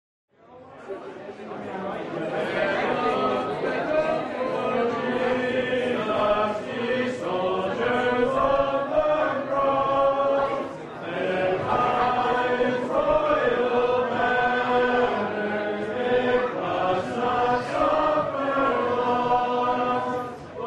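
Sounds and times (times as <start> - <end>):
people singing a hymn at a hymn sing: 2.3 - 20.6.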